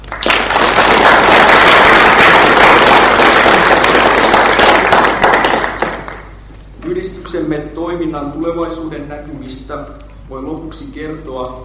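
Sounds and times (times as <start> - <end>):
many hands clapping for the organizing team at an association event: 0.0 - 6.6
speech: 7.5 - 11.6.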